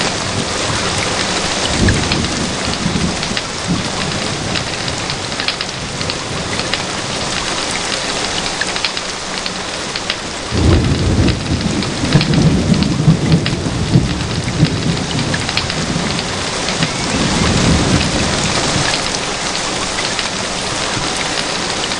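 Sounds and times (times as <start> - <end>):
rain in the forest: 0.0 - 21.9.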